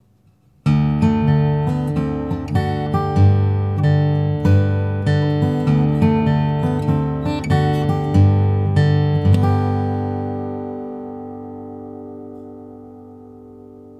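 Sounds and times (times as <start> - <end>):
slack key guitar vamp: 0.7 - 13.9.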